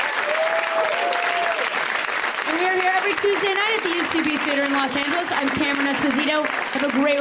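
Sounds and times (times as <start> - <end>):
audience round of applause: 0.0 - 7.1
speech: 3.2 - 7.1.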